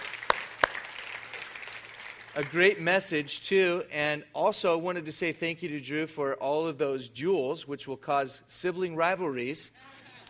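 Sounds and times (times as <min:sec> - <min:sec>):
audience applause: 0:00.0 - 0:02.8
speech: 0:02.4 - 0:09.9.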